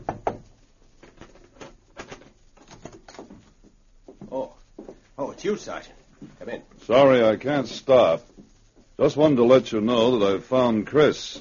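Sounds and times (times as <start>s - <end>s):
knocking on a hotel room door: 0.0s - 0.5s
speech: 5.4s - 8.3s, 9.0s - 11.4s.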